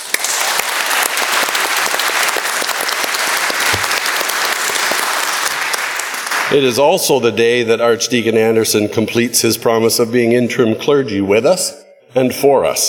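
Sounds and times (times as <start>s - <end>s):
audience applause: 0.0s - 6.5s
speech: 6.5s - 12.8s.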